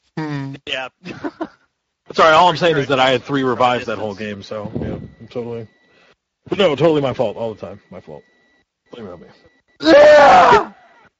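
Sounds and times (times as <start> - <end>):
speech: 0.6 - 5.8, 6.4 - 8.3, 8.9 - 10.7
pained scream in a video game: 9.8 - 10.8.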